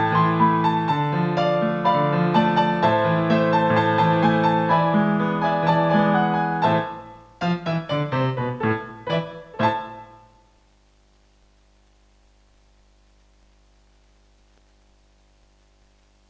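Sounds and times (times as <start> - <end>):
tango on piano: 0.0 - 10.5.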